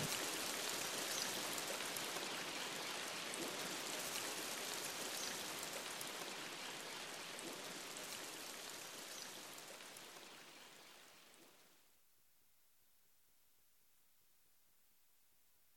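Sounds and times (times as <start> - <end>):
rain: 0.0 - 12.0.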